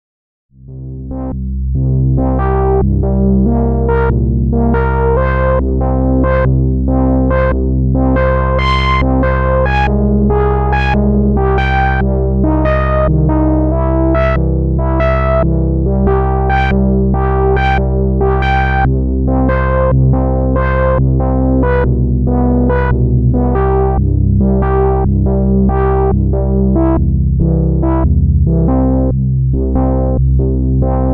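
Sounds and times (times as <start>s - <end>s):
Waldorf synth pulse: 0.7s - 31.0s.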